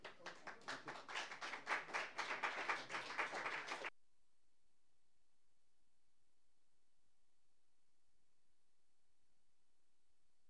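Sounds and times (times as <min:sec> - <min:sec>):
audience applause welcoming a performer at an open mic: 0:00.0 - 0:03.9.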